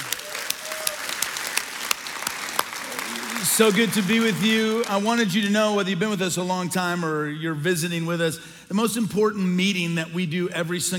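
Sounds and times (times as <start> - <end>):
church congregation applauding to welcome campuses: 0.0 - 5.5
speech: 3.6 - 10.9.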